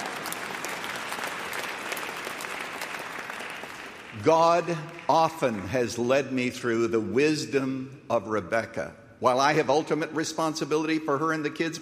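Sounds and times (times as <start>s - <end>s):
audience clapping: 0.0s - 6.1s
speech: 4.2s - 11.7s.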